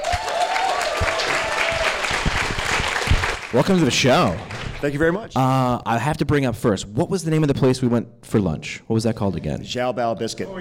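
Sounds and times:
audience applause welcoming a guest at a live show in Charleston: 0:00.0 - 0:04.8
speech: 0:03.5 - 0:10.5.

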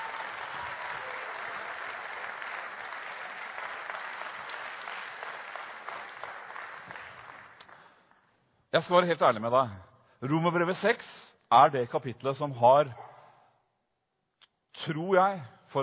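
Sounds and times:
audience applause: 0:00.0 - 0:08.0
speech: 0:08.7 - 0:13.0, 0:14.8 - 0:15.8.

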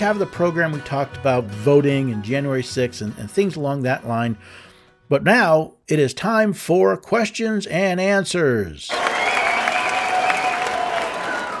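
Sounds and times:
speech: 0:00.0 - 0:09.3
canned cheering crowd sound effect: 0:08.9 - 0:11.5.

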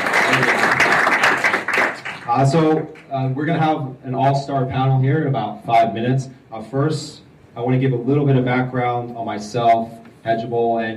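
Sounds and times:
audience applause: 0:00.0 - 0:02.3
speech: 0:02.3 - 0:10.9.

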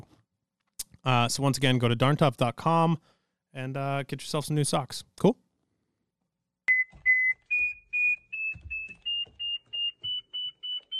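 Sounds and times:
speech: 0:01.0 - 0:05.4
Mammut Barryvox avalanche beacon beeping: 0:06.7 - 0:10.9.

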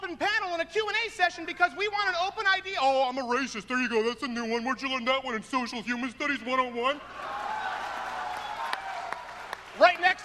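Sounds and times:
speech: 0:00.1 - 0:07.4
scattered audience claps: 0:08.3 - 0:10.2.

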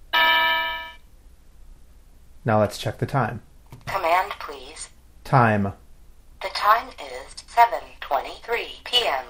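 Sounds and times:
bell-like electronic device alarm chime: 0:00.1 - 0:01.0
speech: 0:02.4 - 0:03.5, 0:04.8 - 0:05.8, 0:07.0 - 0:09.2.

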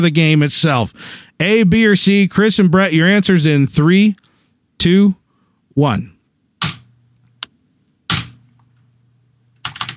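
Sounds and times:
speech: 0:00.0 - 0:05.2, 0:05.8 - 0:06.2
pounding on a computer keyboard: 0:06.6 - 0:06.9, 0:08.1 - 0:08.4, 0:09.6 - 0:09.9.

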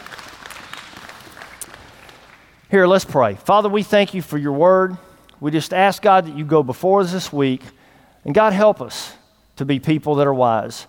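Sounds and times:
audience hand clapping: 0:00.0 - 0:02.6
speech: 0:02.7 - 0:10.8.

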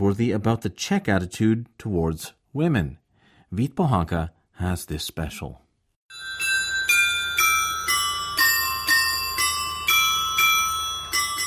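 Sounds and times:
speech: 0:00.0 - 0:05.6
clock tower of the old town hall in Žďár nad Sázavou playing a melody: 0:06.1 - 0:11.4.

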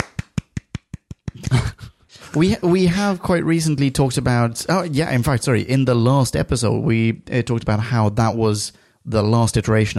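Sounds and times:
hand clapping applause: 0:00.0 - 0:01.7
speech: 0:02.3 - 0:09.9.

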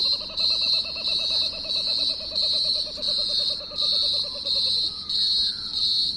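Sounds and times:
kookaburra laughing call: 0:00.0 - 0:04.9
high insect-like buzz: 0:00.0 - 0:06.1.

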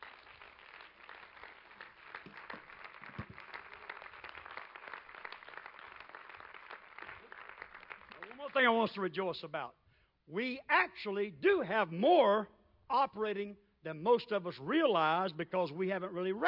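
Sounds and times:
audience clapping hands: 0:00.0 - 0:09.0
speech: 0:08.5 - 0:16.4.

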